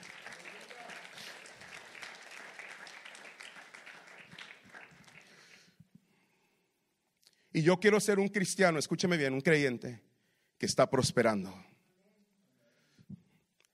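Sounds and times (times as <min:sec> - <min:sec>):
audience applause: 0:00.0 - 0:05.7
speech: 0:07.6 - 0:11.7.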